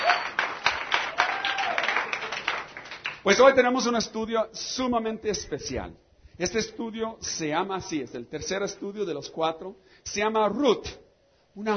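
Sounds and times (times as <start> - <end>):
crowd applauding: 0.0 - 3.2
faint voices and cheers: 1.1 - 2.0
speech: 3.2 - 11.0, 11.6 - 11.7.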